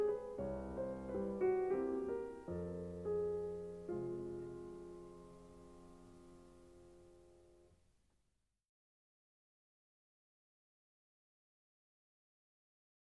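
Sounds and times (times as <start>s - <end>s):
solo piano mazurka played by a pianist: 0.0s - 7.7s.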